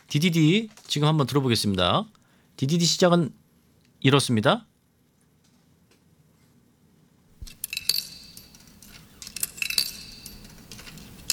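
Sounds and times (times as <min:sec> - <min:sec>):
low hum: 0:00.0 - 0:11.3
speech: 0:00.1 - 0:03.4, 0:04.0 - 0:04.7
coins inserted into a vending machine: 0:07.5 - 0:11.3.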